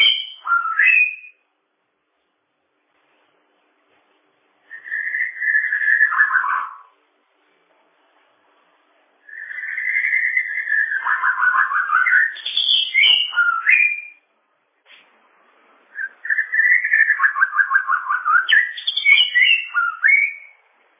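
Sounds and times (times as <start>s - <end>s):
bird song: 0.0s - 1.5s, 4.6s - 7.0s, 9.2s - 14.3s, 15.9s - 20.7s.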